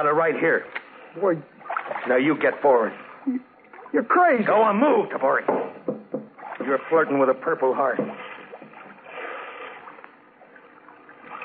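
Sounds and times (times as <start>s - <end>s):
speech: 0.0s - 6.0s, 6.6s - 8.1s
canoe paddle splashing through water, radio drama sound effect: 1.6s - 4.6s, 6.3s - 11.4s.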